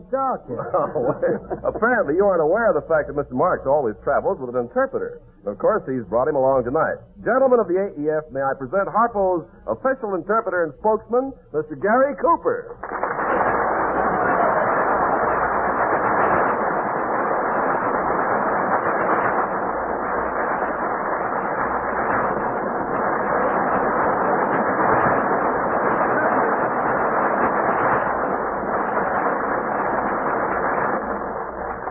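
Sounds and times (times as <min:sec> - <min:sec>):
speech: 0:00.0 - 0:13.1
laughter: 0:00.5 - 0:02.2
audience applause: 0:12.8 - 0:31.8.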